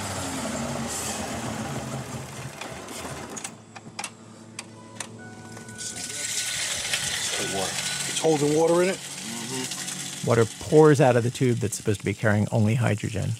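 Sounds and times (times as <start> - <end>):
hydrogen-fueled truck engine running then shutting down: 0.0 - 3.8, 5.2 - 12.0
speech: 7.6 - 13.3.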